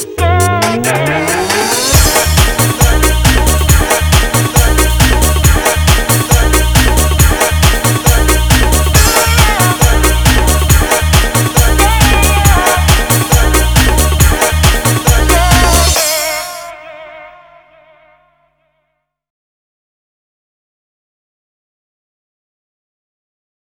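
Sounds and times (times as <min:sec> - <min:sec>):
cup win victory jingle: 0:00.1 - 0:16.7.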